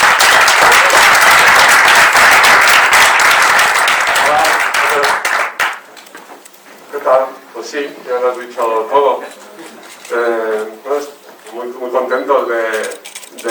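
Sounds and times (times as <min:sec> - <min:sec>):
audience applause: 0:00.0 - 0:05.9
speech: 0:07.1 - 0:09.4, 0:10.1 - 0:13.5.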